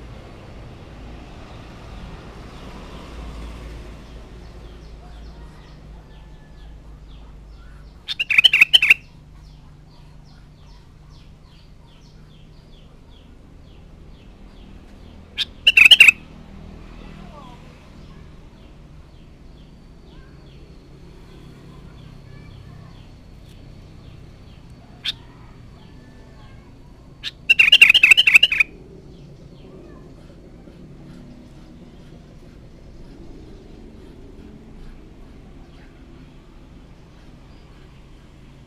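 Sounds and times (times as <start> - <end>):
sooty-headed bulbul bubbly warbled phrases and sharp notes: 8.0 - 9.1, 15.4 - 16.2, 27.2 - 28.8.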